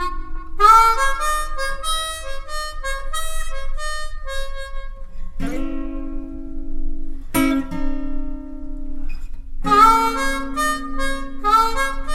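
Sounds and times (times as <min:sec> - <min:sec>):
blues harmonica: 0:00.0 - 0:06.2, 0:09.0 - 0:12.1.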